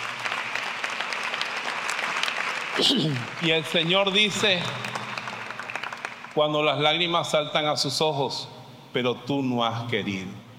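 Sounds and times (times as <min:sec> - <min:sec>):
audience applauding: 0:00.0 - 0:06.6
speech: 0:02.8 - 0:04.9, 0:06.4 - 0:10.4.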